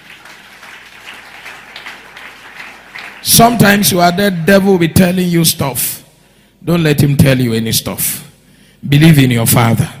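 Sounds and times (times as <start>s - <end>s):
audience clapping: 0.0s - 4.3s
speech: 3.2s - 6.0s, 6.6s - 8.2s, 8.8s - 9.9s.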